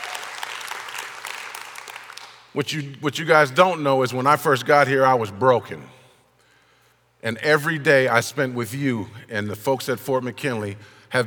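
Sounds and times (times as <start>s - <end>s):
audience applause: 0.0s - 2.4s
speech: 2.6s - 6.0s, 7.2s - 11.2s.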